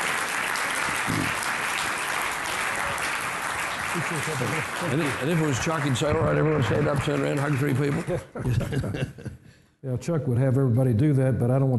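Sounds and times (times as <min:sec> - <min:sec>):
audience applauding: 0:00.0 - 0:08.3
laughter: 0:03.8 - 0:05.2, 0:06.8 - 0:09.4
speech: 0:04.0 - 0:11.7.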